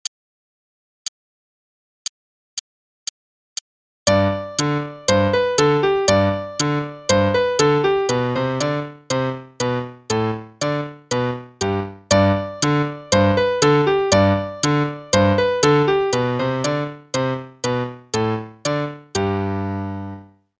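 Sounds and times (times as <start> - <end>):
musette piece: 4.1 - 20.5.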